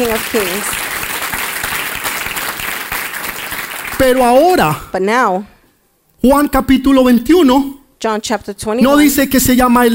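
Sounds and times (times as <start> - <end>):
speech: 0.0 - 0.8, 4.0 - 5.5, 6.2 - 9.9
audience applauding: 0.0 - 4.4.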